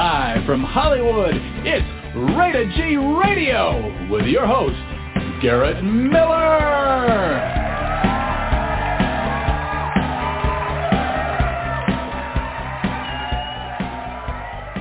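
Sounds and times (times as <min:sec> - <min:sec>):
speech: 0:00.0 - 0:07.6
wild applause and cheering: 0:05.8 - 0:14.7.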